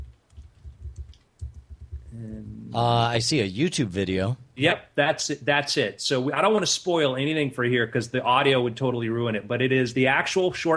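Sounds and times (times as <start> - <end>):
typing a YouTube search on a computer keyboard: 0.0 - 2.0
speech: 2.2 - 10.7.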